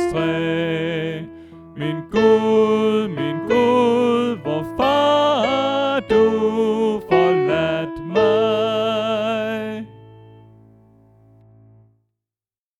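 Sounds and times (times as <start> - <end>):
soprano voice: 0.0 - 10.0.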